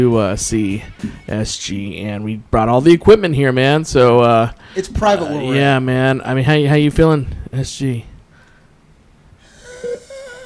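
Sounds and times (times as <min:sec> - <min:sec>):
speech: 0:00.0 - 0:08.1
breathing machine hissing with airflow and wheezing: 0:00.9 - 0:01.3, 0:04.6 - 0:05.0, 0:09.4 - 0:10.4.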